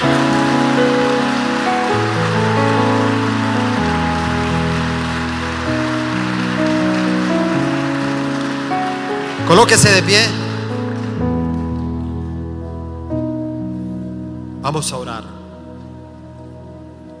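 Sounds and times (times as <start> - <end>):
audience applauding: 0.0 - 12.2
sustained keyboard chords: 0.0 - 17.1
speech: 9.5 - 10.4, 14.7 - 15.3.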